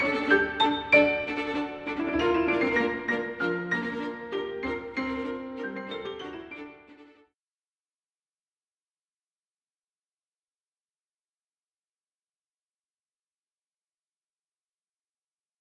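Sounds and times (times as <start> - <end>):
piano piece: 0.0 - 7.3.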